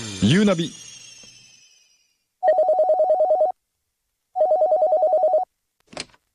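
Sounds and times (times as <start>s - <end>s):
speech: 0.2s - 0.9s
telephone ringing: 2.4s - 3.6s, 4.3s - 5.5s.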